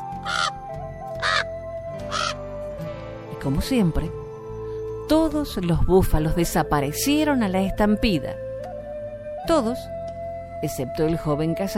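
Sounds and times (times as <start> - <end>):
crows cawing: 0.1 - 2.5
speech: 3.4 - 4.2, 5.1 - 8.4, 9.5 - 10.0, 10.6 - 11.7.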